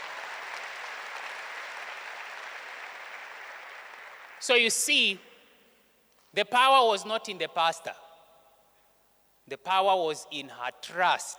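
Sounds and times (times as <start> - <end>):
large crowd clapping: 0.0 - 4.8
speech: 4.4 - 5.3, 6.4 - 8.0, 9.5 - 11.3.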